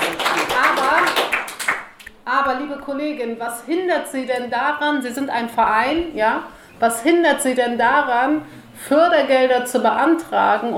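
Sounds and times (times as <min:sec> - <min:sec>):
applause: 0:00.0 - 0:02.0
speech: 0:02.6 - 0:10.7.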